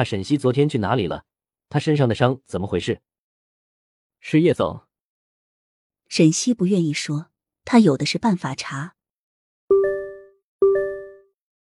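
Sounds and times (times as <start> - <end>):
speech: 0.0 - 3.1, 4.2 - 4.9, 6.1 - 9.0
phone message notification tone: 9.7 - 11.4.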